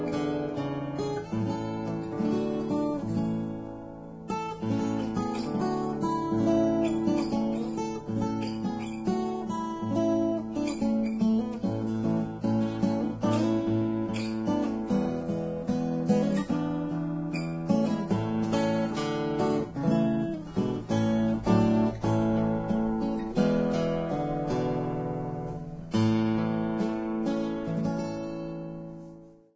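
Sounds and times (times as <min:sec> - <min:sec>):
acoustic guitar: 0:00.0 - 0:29.5.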